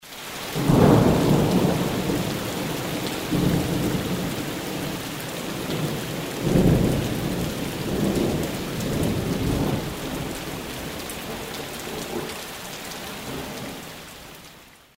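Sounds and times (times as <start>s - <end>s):
thunder: 0.6s - 12.3s.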